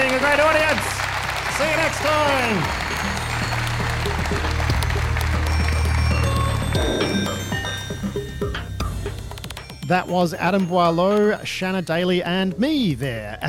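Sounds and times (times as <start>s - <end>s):
audience applause: 0.0s - 7.9s
speech: 9.9s - 13.4s.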